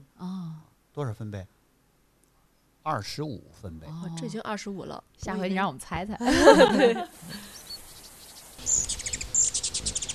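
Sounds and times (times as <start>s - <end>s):
speech: 1.0s - 1.6s, 2.8s - 7.5s
laughter: 6.2s - 7.4s
birdsong with quick high-pitched chirps: 7.3s - 10.1s.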